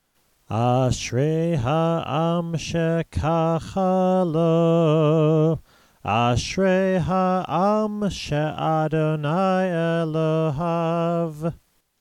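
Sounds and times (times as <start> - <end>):
prayer chanting: 0.5 - 11.6.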